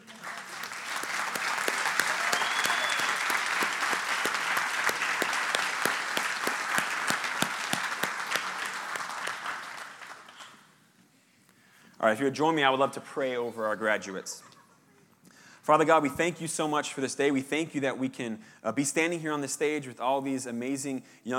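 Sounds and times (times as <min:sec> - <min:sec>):
crowd clapping: 0:00.0 - 0:10.7
speech: 0:12.0 - 0:14.5, 0:15.7 - 0:21.3.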